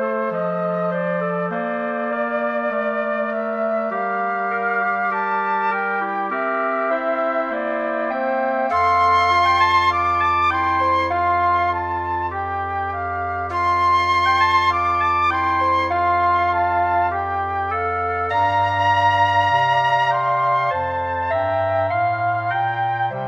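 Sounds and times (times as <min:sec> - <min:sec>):
wind ensemble playing: 0:00.0 - 0:23.2.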